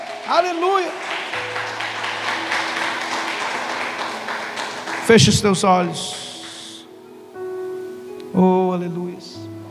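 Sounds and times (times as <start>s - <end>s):
audience applause: 0.0s - 6.8s
speech: 0.3s - 1.8s, 5.1s - 6.2s, 8.4s - 9.4s.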